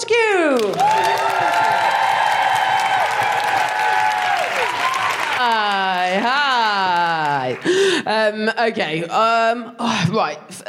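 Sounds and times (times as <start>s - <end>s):
audience applauding for a stand-up comic: 0.6s - 8.0s
audience whooping for a stand-up comic: 0.7s - 6.0s
speech: 8.0s - 10.6s.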